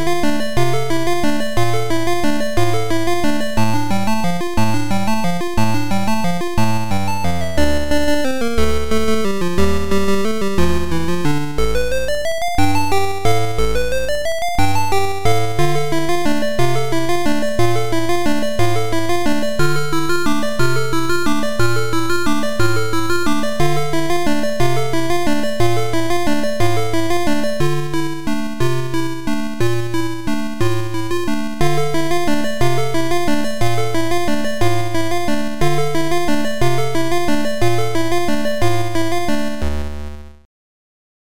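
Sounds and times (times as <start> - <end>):
Christmas carol theme music: 0.0 - 39.6.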